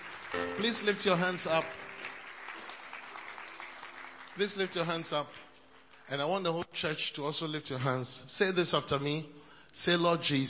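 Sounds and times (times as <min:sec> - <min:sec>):
church audience clapping: 0:00.0 - 0:06.7
speech: 0:00.3 - 0:01.9, 0:04.4 - 0:05.4, 0:06.1 - 0:10.4.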